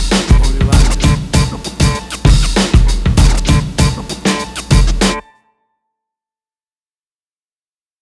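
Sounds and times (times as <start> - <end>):
1990s hip hop music: 0.0 - 5.4.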